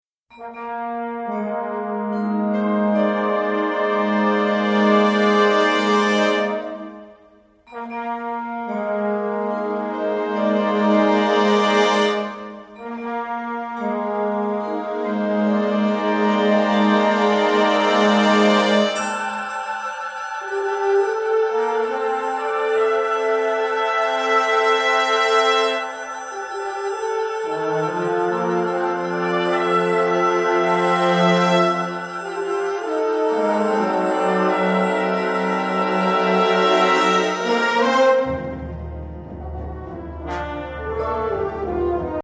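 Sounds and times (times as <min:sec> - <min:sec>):
wind ensemble fanfare: 0:00.3 - 0:42.2.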